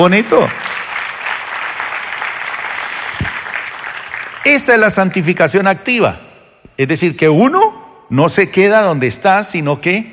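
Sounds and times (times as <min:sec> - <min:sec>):
speech: 0:00.0 - 0:00.7, 0:04.4 - 0:06.2, 0:06.8 - 0:10.1
audience applauding: 0:00.0 - 0:04.7.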